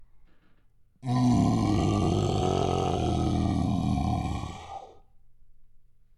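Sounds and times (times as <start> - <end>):
random vocal: 1.0 - 5.0.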